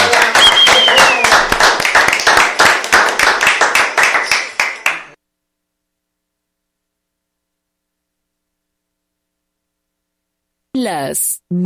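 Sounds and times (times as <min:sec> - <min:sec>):
audience applause: 0:00.0 - 0:05.2
speech: 0:10.8 - 0:11.6.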